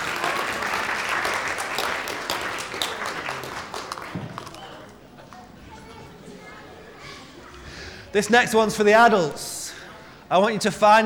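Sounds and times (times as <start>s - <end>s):
audience clapping: 0.0s - 5.5s
speech: 8.1s - 9.5s, 10.3s - 11.0s.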